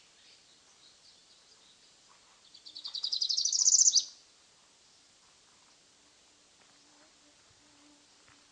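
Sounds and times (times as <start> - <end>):
tropical parula Setophaga pitiayumi pulchra buzzy trill: 2.7 - 4.1.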